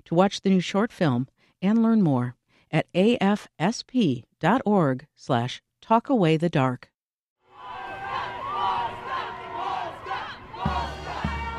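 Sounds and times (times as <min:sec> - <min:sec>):
speech: 0:00.1 - 0:06.9
parade crowd on a city street shouting and cheering: 0:07.4 - 0:11.5.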